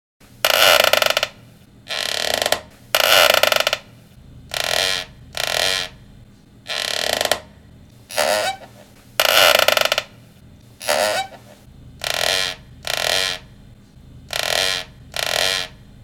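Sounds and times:
chair creaking: 0.4s - 3.9s, 4.5s - 6.0s, 6.7s - 7.5s, 8.1s - 10.1s, 10.8s - 13.5s, 14.3s - 15.8s.

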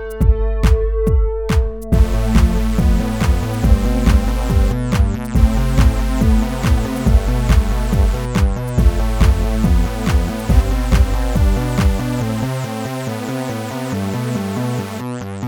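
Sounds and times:
cyber intro music: 0.2s - 15.0s.

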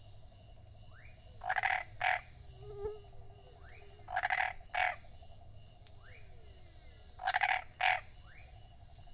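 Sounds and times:
tree frog grating croaks: 1.4s - 2.3s, 4.1s - 5.1s, 7.2s - 8.1s.

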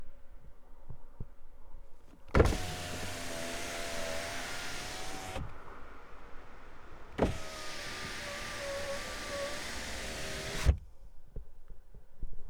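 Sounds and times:
car electric window: 2.3s - 10.8s.

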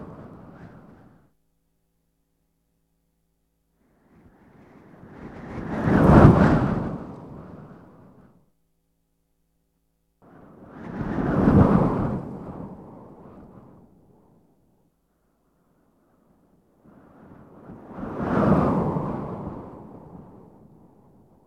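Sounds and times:
strong wind: 0.0s - 1.2s, 3.9s - 8.4s, 10.2s - 14.7s, 15.8s - 21.4s.

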